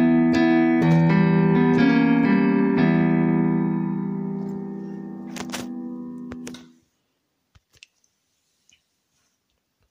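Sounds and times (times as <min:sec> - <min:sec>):
piano: 0:00.0 - 0:06.9.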